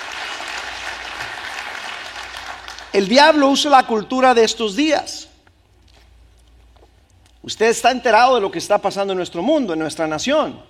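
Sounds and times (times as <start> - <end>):
audience applause: 0.0 - 2.9
speech: 2.9 - 5.3, 7.4 - 10.6.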